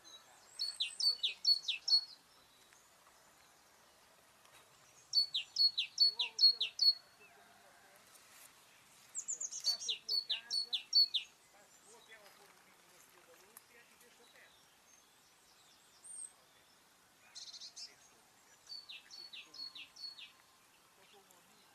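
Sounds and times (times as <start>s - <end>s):
great tit calls: 0.0s - 2.7s, 4.9s - 7.0s, 9.2s - 12.2s, 14.1s - 21.7s
faint chatter: 0.0s - 14.9s, 16.0s - 21.7s.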